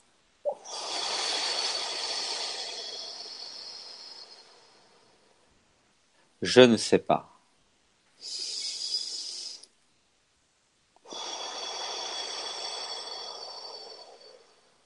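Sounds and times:
deep breathing exercise: 0:00.5 - 0:06.4, 0:08.2 - 0:09.7, 0:11.0 - 0:14.8
speech: 0:06.4 - 0:07.3.

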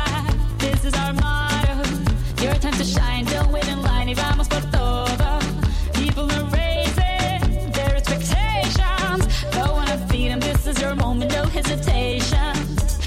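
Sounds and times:
loud pop music at a bowling alley: 0:00.0 - 0:13.0
person singing: 0:00.0 - 0:13.0.

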